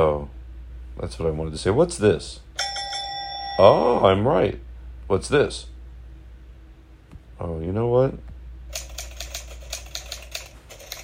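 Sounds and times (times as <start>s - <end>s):
speech: 0.0s - 0.3s, 1.0s - 2.8s, 3.6s - 5.7s, 7.4s - 8.3s
old typewriter keys clacking: 8.7s - 11.0s.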